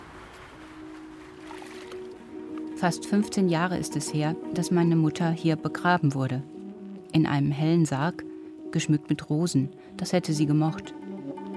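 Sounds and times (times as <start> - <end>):
water poured over a natural gravestone during cleaning: 0.8 - 2.7
speech: 2.8 - 6.5, 7.2 - 11.0.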